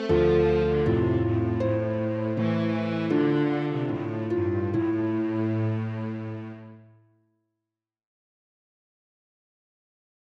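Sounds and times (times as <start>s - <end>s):
processional music on harp and cello: 0.0s - 6.9s.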